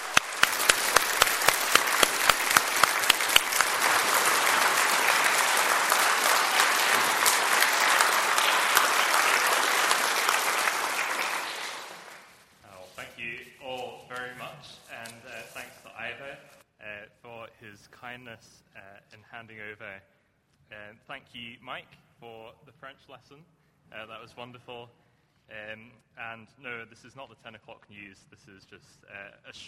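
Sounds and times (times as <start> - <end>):
church congregation clapping to welcome its new minister: 0.0 - 12.5
speech: 21.2 - 29.6.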